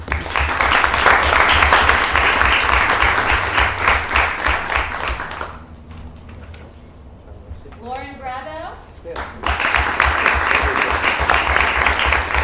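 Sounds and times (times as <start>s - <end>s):
audience applause: 0.0s - 5.7s, 9.1s - 12.4s.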